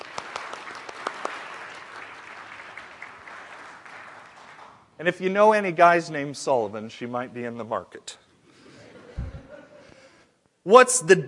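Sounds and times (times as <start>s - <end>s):
audience applause: 0.0s - 4.8s
speech: 5.0s - 8.2s, 10.7s - 11.2s
laughter: 8.6s - 10.2s.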